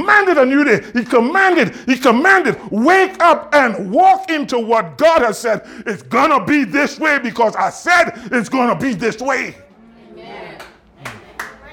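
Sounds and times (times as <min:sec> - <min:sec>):
speech: 0:00.1 - 0:09.6
half-hearted audience clapping: 0:10.6 - 0:11.7.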